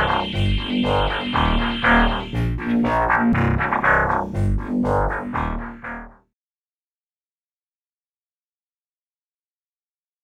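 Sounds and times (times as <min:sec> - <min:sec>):
industrial sound: 0:00.0 - 0:06.2.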